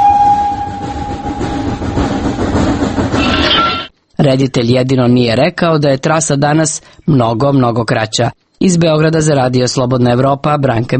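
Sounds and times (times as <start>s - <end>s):
passing train: 0.0s - 3.9s
speech: 4.2s - 10.9s.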